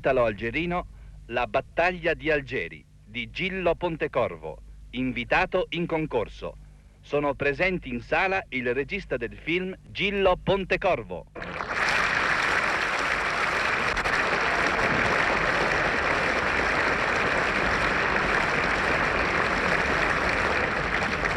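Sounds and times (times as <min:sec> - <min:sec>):
speech: 0:00.0 - 0:11.7
audience applause in cinema hall: 0:11.4 - 0:21.3.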